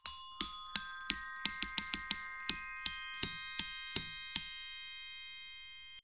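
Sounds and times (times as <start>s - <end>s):
glockenspiel: 0.0s - 6.0s.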